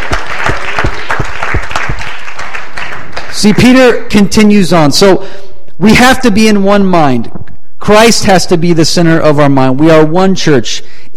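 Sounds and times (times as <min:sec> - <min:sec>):
audience clapping: 0:00.0 - 0:04.1
speech: 0:03.4 - 0:11.1.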